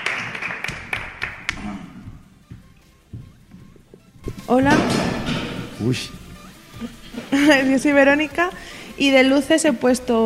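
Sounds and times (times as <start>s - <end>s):
applause: 0.0s - 1.6s
speech: 4.5s - 5.2s, 5.8s - 6.2s, 6.8s - 10.2s.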